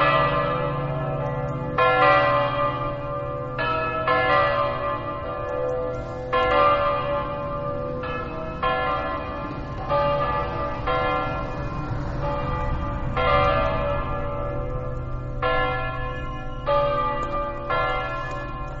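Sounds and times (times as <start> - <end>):
church bells in Aquileia: 0.0 - 18.7.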